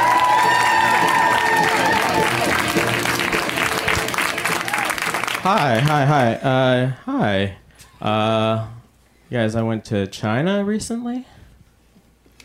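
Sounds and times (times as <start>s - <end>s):
audience applauding and cheering a comedian: 0.0s - 6.7s
speech: 5.4s - 11.3s.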